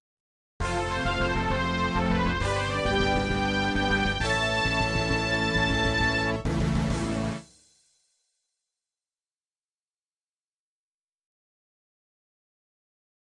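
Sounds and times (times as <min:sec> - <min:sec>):
MIDI victory music: 0:00.6 - 0:07.6.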